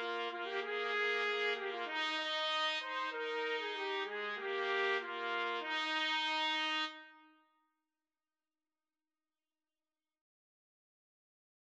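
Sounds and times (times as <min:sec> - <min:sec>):
trumpet trio playing: 0:00.0 - 0:07.2.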